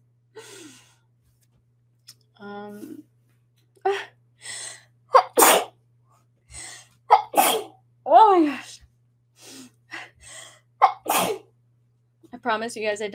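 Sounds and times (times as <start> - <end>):
person sneezing: 5.2 - 5.7, 7.1 - 7.7, 10.8 - 11.4
speech: 12.5 - 13.1.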